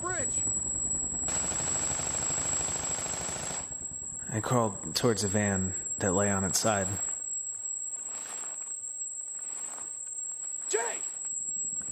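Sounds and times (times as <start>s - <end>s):
steady high-pitched whine: 0.0s - 11.9s
gunfire aimed at a helicopter from behind cars near a bridge: 1.3s - 3.7s
speech: 4.3s - 7.1s.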